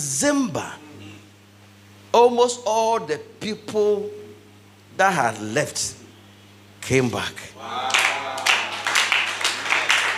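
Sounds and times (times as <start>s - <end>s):
speech: 0.2s - 0.8s, 2.2s - 4.2s, 5.0s - 6.0s, 6.8s - 8.1s
weak audience clapping: 7.8s - 10.1s.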